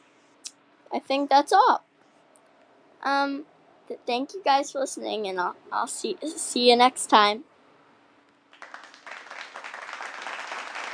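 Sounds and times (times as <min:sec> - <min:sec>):
speech: 0:00.9 - 0:01.9, 0:03.0 - 0:07.5
applause: 0:08.5 - 0:10.9.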